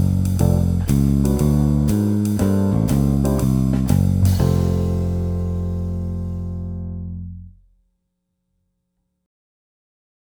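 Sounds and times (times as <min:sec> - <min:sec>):
jazz bass line: 0:00.0 - 0:07.6.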